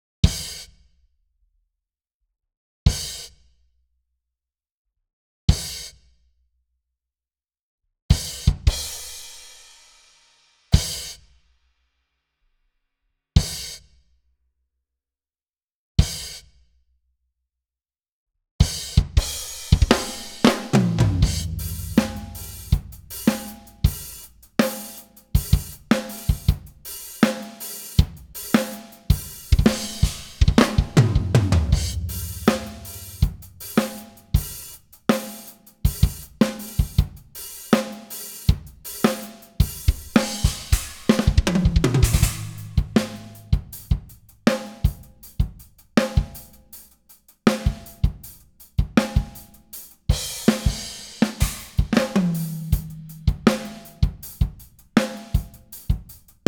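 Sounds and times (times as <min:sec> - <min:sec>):
drums: 0:00.2 - 0:00.9, 0:02.9 - 0:03.6, 0:05.5 - 0:06.2, 0:08.1 - 0:11.4, 0:13.4 - 0:14.0, 0:16.0 - 0:16.7, 0:18.6 - 0:56.4.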